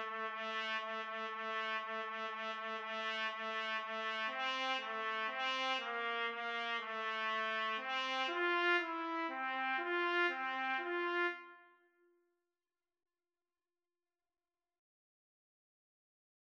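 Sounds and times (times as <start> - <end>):
trumpet duet: 0.0 - 11.8.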